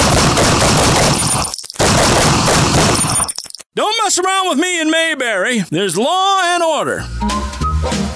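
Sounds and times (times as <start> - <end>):
rapid gunshots: 0.0 - 3.3
speech: 3.8 - 8.0.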